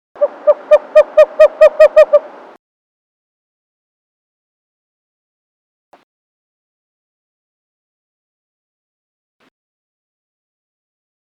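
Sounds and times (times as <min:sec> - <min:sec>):
Western Screech Owl calling: 0:00.2 - 0:02.4.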